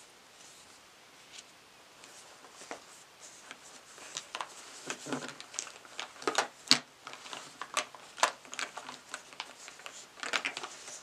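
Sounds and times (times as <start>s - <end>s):
crinkling of beauty bag: 0.0s - 11.0s
faint steady hiss: 0.0s - 11.0s.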